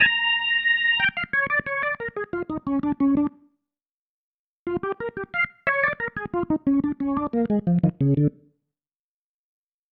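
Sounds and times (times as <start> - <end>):
organ pattern: 0.0 - 3.4, 4.7 - 8.4.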